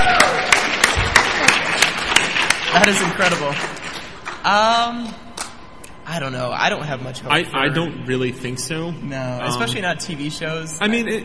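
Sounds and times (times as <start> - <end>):
audience applause: 0.0 - 4.5
speech: 2.8 - 3.8, 4.4 - 5.2, 6.1 - 11.2.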